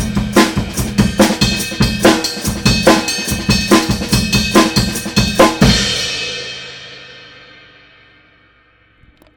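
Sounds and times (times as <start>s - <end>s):
jungle remix hi-hats: 0.0s - 6.4s.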